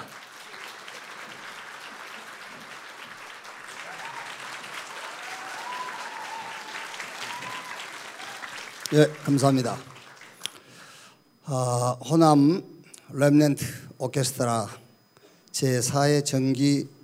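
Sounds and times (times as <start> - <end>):
audience applause: 0.0 - 10.5
speech: 8.9 - 9.9, 11.5 - 14.8, 15.6 - 17.0.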